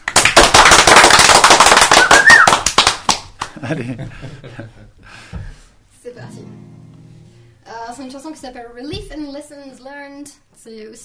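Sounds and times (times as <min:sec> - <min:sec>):
crowd applauding: 0:00.0 - 0:03.6
short rising whistle: 0:01.9 - 0:02.6
laughter: 0:03.6 - 0:05.1
speech: 0:03.6 - 0:05.3, 0:06.1 - 0:06.9, 0:07.7 - 0:11.0.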